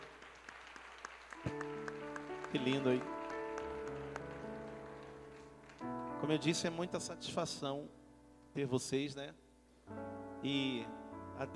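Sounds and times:
audience applause: 0:00.0 - 0:05.9
speech: 0:02.5 - 0:03.2, 0:06.2 - 0:11.5.

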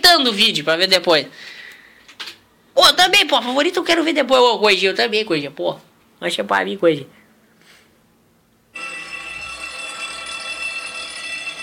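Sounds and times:
speech: 0:00.2 - 0:01.6, 0:02.8 - 0:07.2
electric bell ringing: 0:08.7 - 0:11.6.

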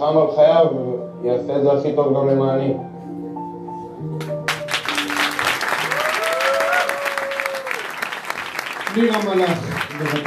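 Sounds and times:
speech: 0:00.0 - 0:02.9, 0:09.0 - 0:10.2
audience applause: 0:04.5 - 0:10.2.

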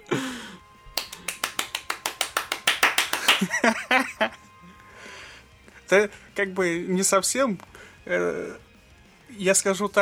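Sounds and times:
studio applause: 0:00.0 - 0:05.0
laughter: 0:02.8 - 0:04.4
speech: 0:03.4 - 0:04.4, 0:05.9 - 0:08.6, 0:09.3 - 0:10.0.

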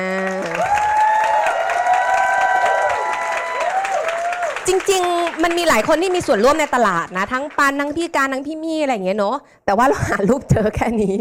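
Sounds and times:
crowd applause: 0:00.1 - 0:07.7
speech: 0:04.7 - 0:11.1.

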